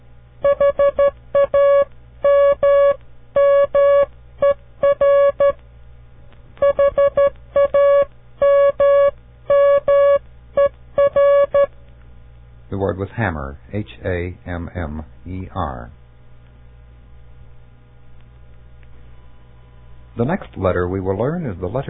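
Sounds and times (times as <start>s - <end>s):
faint low hum: 0.0s - 21.8s
Morse code tones spelling a word: 0.4s - 5.6s, 6.6s - 11.7s
speech: 13.8s - 16.0s, 20.2s - 21.8s.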